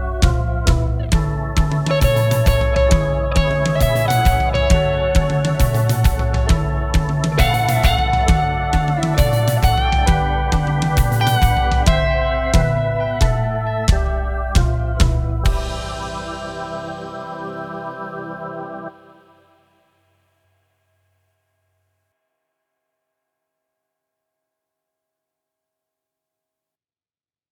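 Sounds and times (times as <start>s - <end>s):
backing track: 0.0s - 19.6s.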